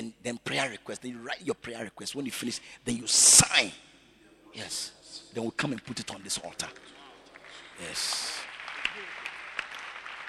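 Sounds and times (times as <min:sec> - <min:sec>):
speech: 0:00.3 - 0:03.9, 0:04.5 - 0:07.0, 0:07.8 - 0:08.4
audience applause: 0:06.7 - 0:10.2.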